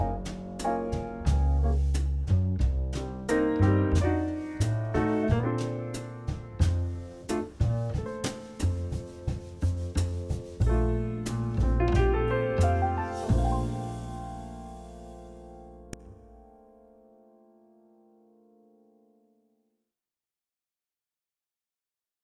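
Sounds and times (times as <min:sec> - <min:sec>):
bossa nova jazz: 0:00.0 - 0:15.7.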